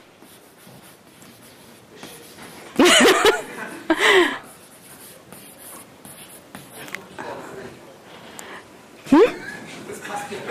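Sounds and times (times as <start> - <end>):
chalk scratching and tapping on a board: 0.1 - 2.8, 4.4 - 7.0
person chuckling: 2.8 - 4.5, 9.1 - 9.7.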